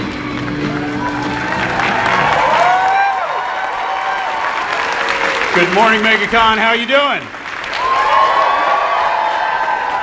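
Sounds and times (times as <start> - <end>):
convention crowd cheering with high whoops: 0.0 - 10.0
speech: 5.6 - 7.4.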